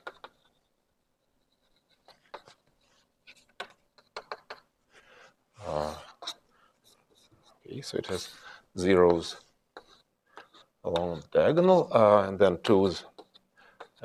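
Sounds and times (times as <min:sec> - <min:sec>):
pen strokes scratching as a matrix is written by hand: 0:00.0 - 0:04.6, 0:06.0 - 0:12.0
speech: 0:07.8 - 0:09.4, 0:10.9 - 0:13.1.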